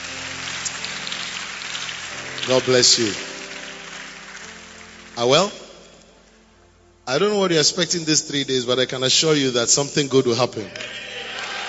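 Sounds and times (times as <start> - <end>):
audience clapping hands: 0.0 - 6.0, 10.7 - 11.6
speech: 2.4 - 3.3, 5.2 - 5.6, 7.1 - 11.1.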